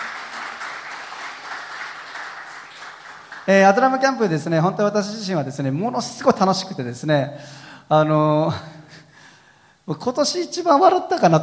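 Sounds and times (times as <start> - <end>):
church congregation applause in thanks to Jesus: 0.0 - 4.1
speech: 3.5 - 8.8, 9.9 - 11.4.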